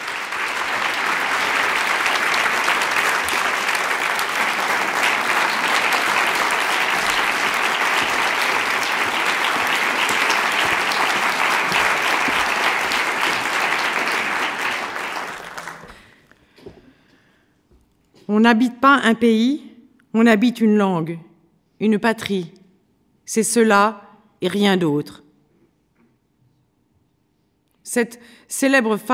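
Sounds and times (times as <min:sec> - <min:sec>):
audience applause: 0:00.0 - 0:16.2
speech: 0:18.4 - 0:19.6, 0:20.2 - 0:22.6, 0:23.3 - 0:25.2, 0:27.9 - 0:29.1.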